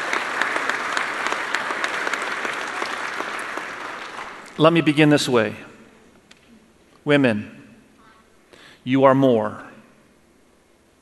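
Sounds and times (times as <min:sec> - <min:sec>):
round of applause from an audience: 0:00.0 - 0:04.6
speech: 0:04.6 - 0:05.7, 0:07.0 - 0:07.6, 0:08.8 - 0:09.7.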